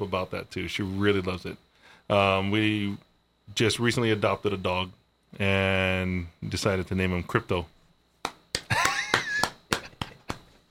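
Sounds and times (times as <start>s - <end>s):
speech: 0.0s - 7.8s
hand clapping: 8.2s - 10.6s.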